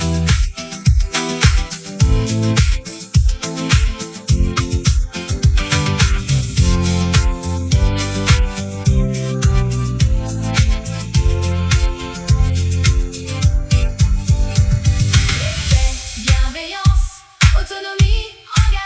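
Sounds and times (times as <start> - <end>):
instrumental music: 0.0 - 16.5
choir singing a refrain: 15.3 - 18.8.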